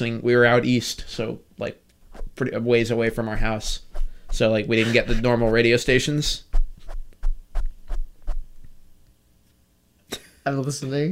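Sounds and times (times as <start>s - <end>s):
speech: 0.0s - 1.8s, 2.4s - 6.5s, 10.4s - 11.0s
low hum: 2.0s - 9.2s
brushing swishes: 2.1s - 2.4s, 3.0s - 8.8s
microphone being dusted off: 2.1s - 2.4s, 3.4s - 8.9s.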